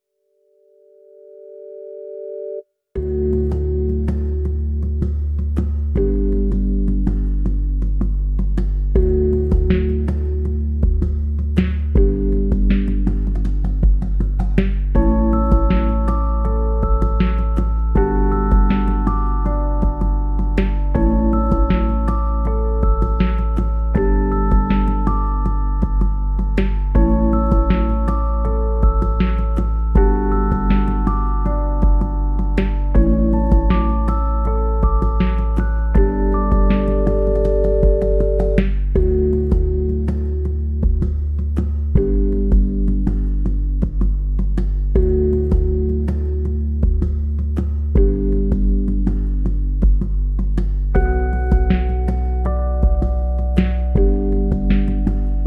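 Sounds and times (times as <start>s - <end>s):
music mix: 3.0s - 55.4s.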